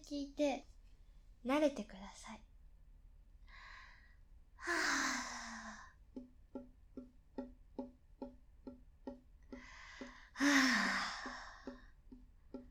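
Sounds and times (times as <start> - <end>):
speech: 0.0 - 0.7, 1.4 - 2.5
person sighing: 4.6 - 6.0, 9.6 - 11.9.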